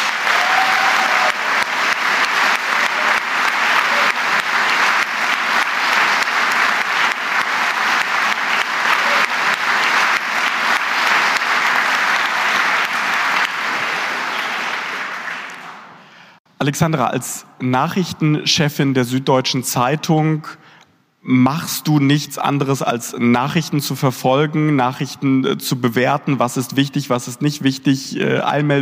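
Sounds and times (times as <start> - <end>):
crowd applauding: 0.0 - 16.4
speech: 16.7 - 20.6, 21.2 - 28.8.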